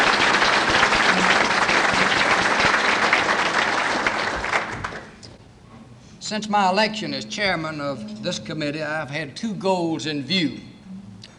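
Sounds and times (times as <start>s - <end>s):
audience applause: 0.0s - 5.3s
speech: 6.3s - 10.7s.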